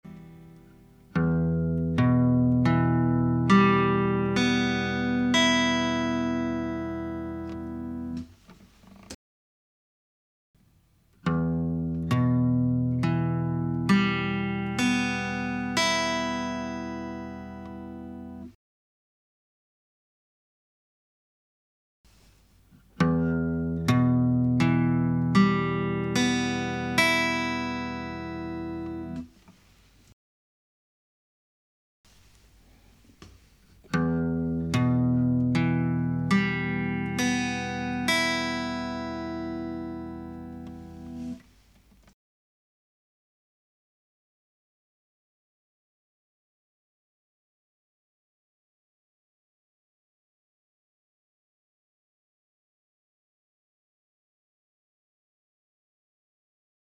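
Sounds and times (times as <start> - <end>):
guitar: 0.0 - 9.2, 11.0 - 18.6, 22.1 - 29.4, 32.2 - 41.5.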